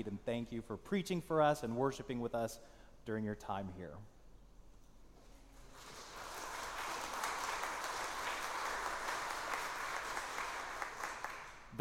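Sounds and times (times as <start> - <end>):
speech: 0.0 - 4.1
audience applause: 5.7 - 11.7.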